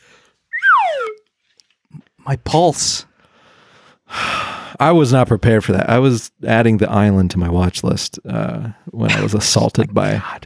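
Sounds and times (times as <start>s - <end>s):
slide whistle: 0.5s - 1.2s
speech: 2.3s - 3.1s, 4.8s - 10.4s
laughter: 8.3s - 10.4s.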